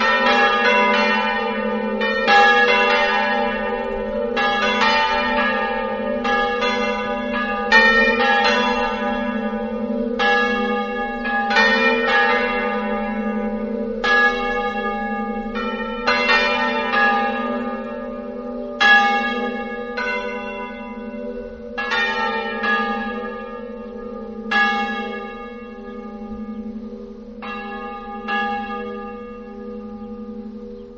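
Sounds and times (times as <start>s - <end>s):
church bells of San Lorenzo ringing: 0.0s - 30.9s.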